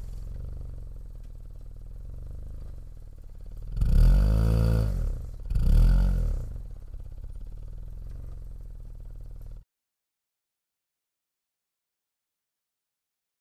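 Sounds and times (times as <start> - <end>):
four-cylinder sports car engine decelerating: 0.0 - 7.3.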